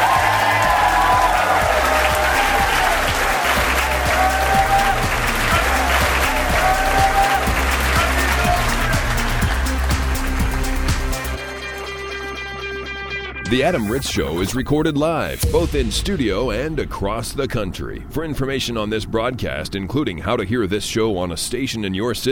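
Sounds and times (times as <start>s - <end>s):
live audience applause: 0.0s - 11.2s
speech: 13.5s - 22.2s.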